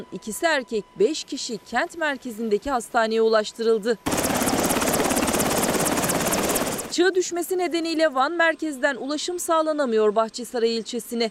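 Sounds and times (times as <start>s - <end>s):
speech: 0.0s - 4.4s, 7.0s - 11.3s
military helicopter flying: 4.1s - 7.0s.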